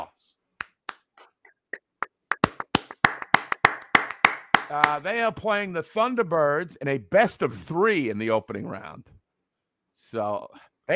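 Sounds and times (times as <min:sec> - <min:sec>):
applause: 0:02.3 - 0:05.1
speech: 0:04.7 - 0:09.2, 0:10.0 - 0:10.9.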